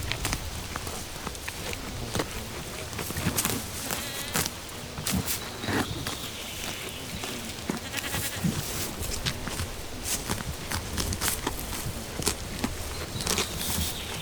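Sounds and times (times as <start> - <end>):
goats: 0.0 - 14.2.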